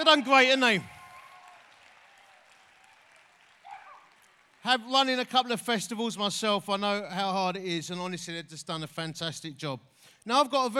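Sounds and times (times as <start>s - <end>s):
speech: 0.0s - 0.9s, 4.6s - 10.7s
crowd cheering: 0.0s - 5.4s.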